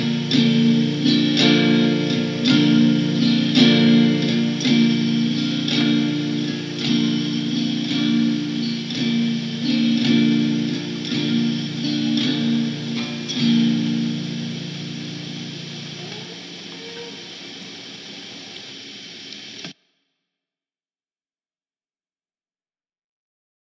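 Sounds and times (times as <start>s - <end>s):
Korean rock music: 0.0s - 16.7s.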